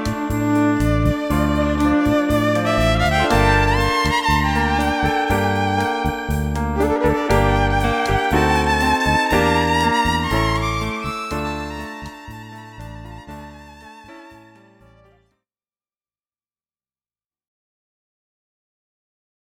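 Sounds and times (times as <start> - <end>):
keyboard in cocktail and dinner music: 0.0 - 15.2
violin in cocktail and dinner music: 0.0 - 15.2
rhythm loop: 1.0 - 13.4.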